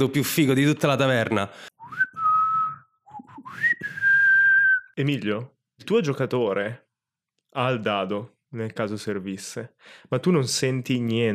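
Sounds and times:
speech: 0.0s - 1.7s, 5.0s - 6.8s, 7.6s - 11.3s
person whistling a tune: 1.8s - 5.0s.

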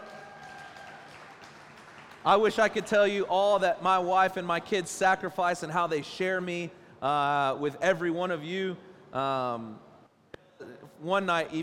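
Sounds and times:
audience applause: 0.0s - 2.6s
speech: 2.2s - 9.8s, 11.0s - 11.6s.

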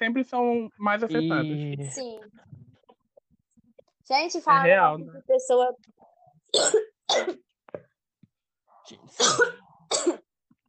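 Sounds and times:
speech: 0.0s - 2.5s, 4.1s - 5.9s, 6.5s - 7.4s, 8.9s - 10.2s
wet phlegmy coughing: 6.5s - 7.5s, 9.2s - 10.3s.

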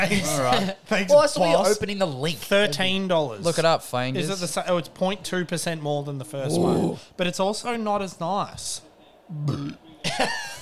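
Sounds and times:
speech: 0.0s - 10.6s
burp: 9.4s - 9.8s.

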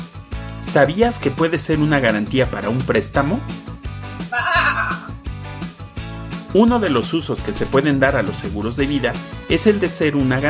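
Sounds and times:
speech: 0.7s - 3.7s, 6.5s - 10.4s
sheep bleating: 4.3s - 5.2s.

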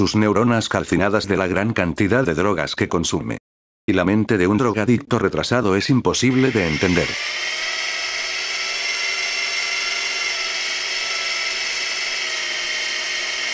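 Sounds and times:
speech: 0.0s - 7.5s
power drill whine from renovation work: 6.3s - 13.5s.

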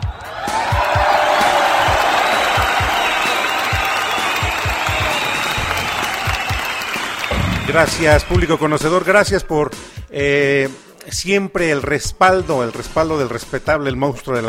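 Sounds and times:
crowd applause: 0.0s - 8.9s
speech: 7.7s - 14.4s.

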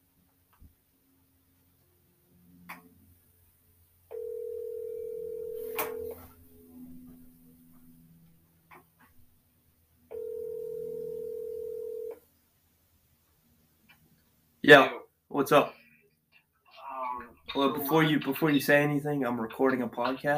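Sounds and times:
outgoing phone call ringback tones: 4.1s - 7.1s, 10.1s - 12.1s
speech: 14.7s - 15.8s, 17.6s - 20.3s.

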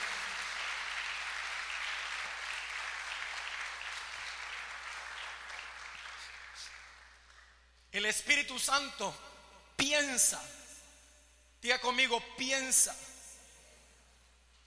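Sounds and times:
crowd clapping: 0.0s - 7.6s
speech: 7.9s - 10.6s, 11.6s - 13.1s.

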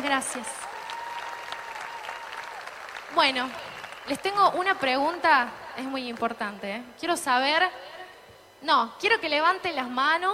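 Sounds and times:
speech: 0.1s - 0.7s, 3.1s - 7.9s, 8.6s - 10.3s
audience applause at a festival: 0.3s - 4.4s.

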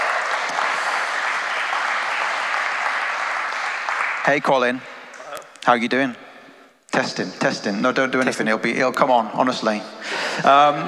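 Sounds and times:
audience applause welcoming a guest at a church service: 0.0s - 4.5s
speech: 4.2s - 4.9s, 5.6s - 6.2s, 6.9s - 10.8s.

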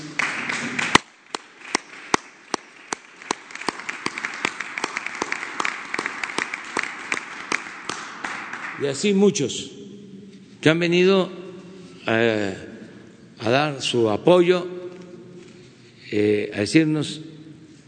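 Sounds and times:
crowd applauding: 0.0s - 8.9s
speech: 8.8s - 9.8s, 10.6s - 11.4s, 12.0s - 12.7s, 13.4s - 14.8s, 16.1s - 17.3s.

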